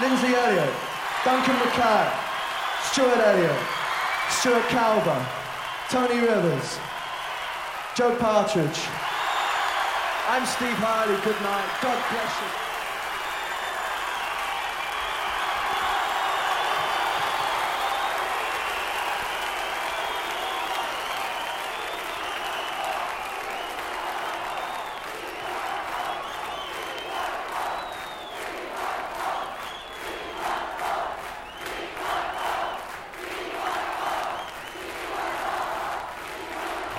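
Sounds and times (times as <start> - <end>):
large concert crowd cheering: 0.0 - 36.9
speech: 0.7 - 2.2, 2.8 - 3.7, 4.4 - 6.9, 8.0 - 9.1, 10.3 - 12.6
whistles: 2.2 - 2.9, 9.0 - 9.9, 12.7 - 28.6, 29.2 - 30.2, 31.4 - 32.9, 34.1 - 34.9.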